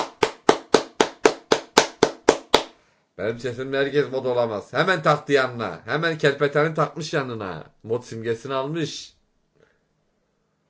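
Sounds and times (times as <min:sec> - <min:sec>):
hands clapping: 0:00.0 - 0:02.8
speech: 0:03.2 - 0:09.2.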